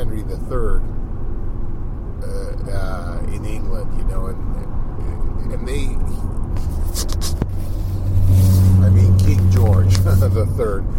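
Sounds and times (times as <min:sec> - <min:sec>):
car being driven, engine and road rumble: 0:00.0 - 0:10.9
speech: 0:00.5 - 0:01.0, 0:03.3 - 0:07.4, 0:09.3 - 0:10.9
brief scrape: 0:06.0 - 0:10.4.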